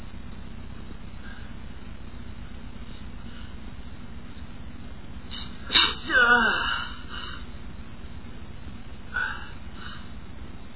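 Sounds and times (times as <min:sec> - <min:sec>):
man sneezing: 0:05.7 - 0:07.0.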